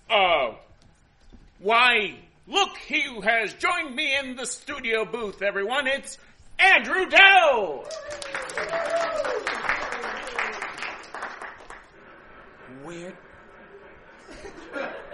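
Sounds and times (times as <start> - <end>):
speech: 1.6 - 9.8, 12.9 - 13.3
audience applause sound effect: 7.8 - 12.0
laughter: 13.6 - 15.1.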